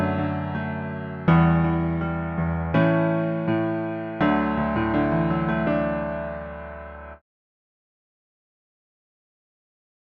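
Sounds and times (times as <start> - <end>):
instrumental music: 0.0 - 7.2.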